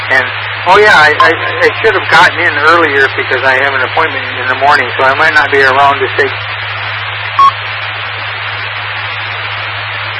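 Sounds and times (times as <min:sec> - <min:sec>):
speech: 0:00.1 - 0:06.5
timer going off: 0:07.4 - 0:07.6.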